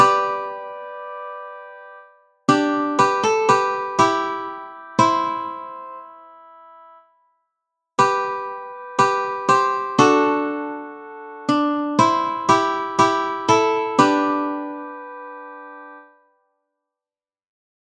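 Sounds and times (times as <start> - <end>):
ukulele: 2.5 - 5.9, 9.1 - 10.9, 11.5 - 15.0.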